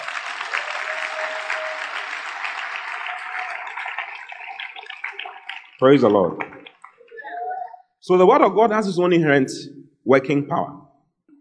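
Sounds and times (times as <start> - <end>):
crowd clapping: 0.0 - 7.3
speech: 5.8 - 6.5, 8.0 - 10.8.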